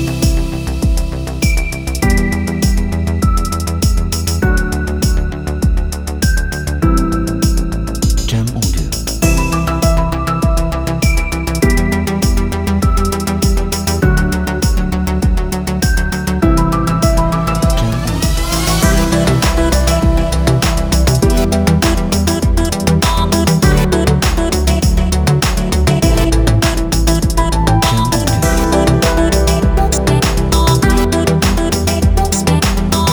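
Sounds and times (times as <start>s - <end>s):
uplifting future bass music: 0.0s - 33.1s.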